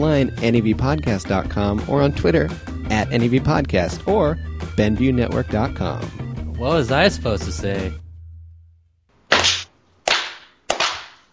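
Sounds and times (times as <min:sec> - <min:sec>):
speech: 0:00.0 - 0:08.0
single hand clap: 0:10.1 - 0:11.2.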